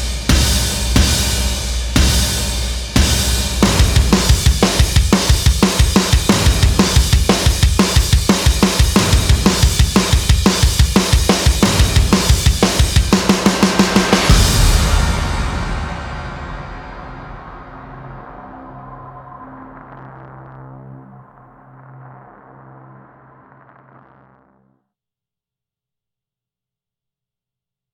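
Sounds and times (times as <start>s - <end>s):
combat drums: 0.0s - 18.3s.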